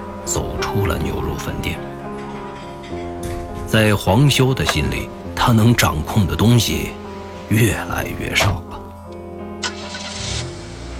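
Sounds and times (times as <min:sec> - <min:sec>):
speech: 0:00.3 - 0:02.0, 0:03.7 - 0:08.7
old BMW 3 Series car engine humming: 0:08.8 - 0:10.9.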